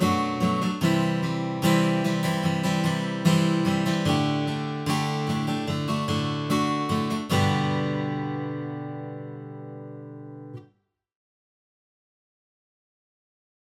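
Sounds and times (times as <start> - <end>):
guitar: 0.0 - 10.7.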